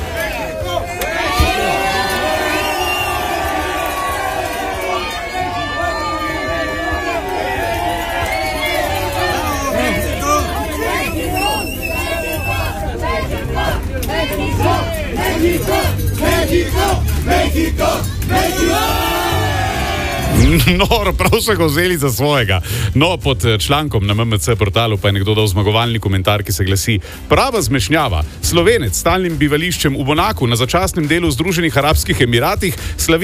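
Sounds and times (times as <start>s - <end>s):
Mexican fans cheering wildly: 0.0s - 22.4s
speech: 20.7s - 33.2s.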